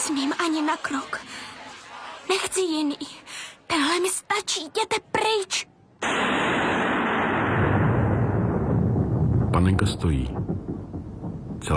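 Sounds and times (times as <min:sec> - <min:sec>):
speech: 0:00.1 - 0:01.4, 0:02.3 - 0:06.4, 0:09.6 - 0:11.7
rolling thunder: 0:06.0 - 0:11.7.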